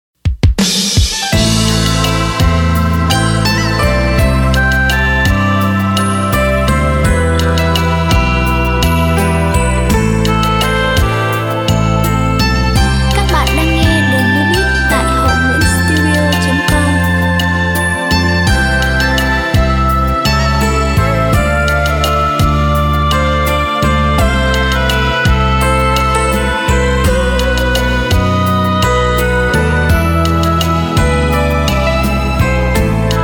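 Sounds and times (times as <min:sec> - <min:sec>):
music beat playback: 0:00.2 - 0:33.2.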